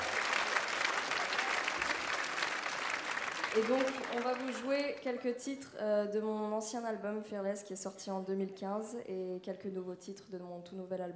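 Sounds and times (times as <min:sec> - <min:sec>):
crowd applause: 0:00.0 - 0:05.1
speech: 0:03.6 - 0:11.1.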